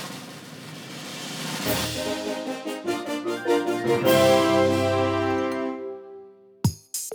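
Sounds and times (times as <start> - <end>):
common background music: 1.6 - 6.6.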